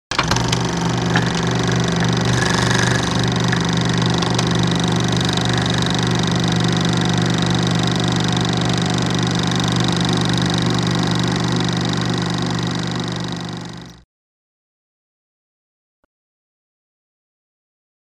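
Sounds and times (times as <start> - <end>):
projector starting: 0.1 - 14.0.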